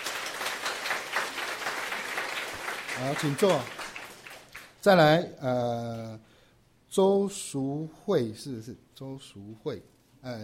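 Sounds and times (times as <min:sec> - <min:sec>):
warm audience applause: 0:00.0 - 0:04.8
speech: 0:03.0 - 0:03.8, 0:04.8 - 0:06.3, 0:06.9 - 0:10.4.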